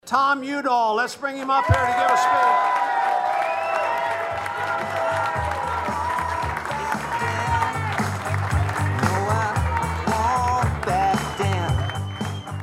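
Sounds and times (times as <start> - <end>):
speech: 0.1 - 2.9
large crowd cheering and applauding: 1.3 - 12.6
rock music with steady thumping bass line: 5.5 - 12.6.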